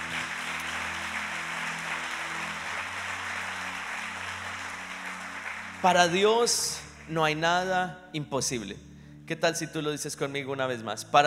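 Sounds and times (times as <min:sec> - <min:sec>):
audience applause: 0:00.0 - 0:07.4
speech: 0:05.8 - 0:11.2.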